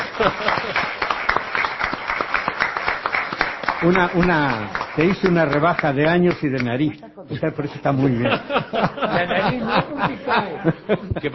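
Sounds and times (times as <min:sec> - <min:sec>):
laughter: 0:00.0 - 0:01.0, 0:07.8 - 0:11.3
audience applause: 0:00.0 - 0:06.7
speech: 0:00.2 - 0:01.0, 0:03.8 - 0:11.3.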